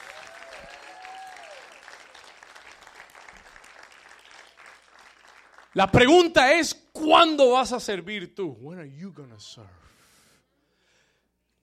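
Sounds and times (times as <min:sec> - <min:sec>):
crowd applauding: 0:00.0 - 0:06.4
speech: 0:05.8 - 0:09.9.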